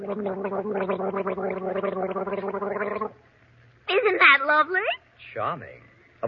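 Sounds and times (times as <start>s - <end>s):
gargling voice imitating nightingale song: 0.0s - 3.2s
speech: 0.0s - 3.2s, 4.0s - 6.2s.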